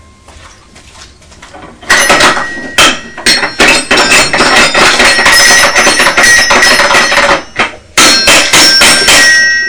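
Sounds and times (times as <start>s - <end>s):
child banging a stick on xylophone: 1.9s - 9.6s.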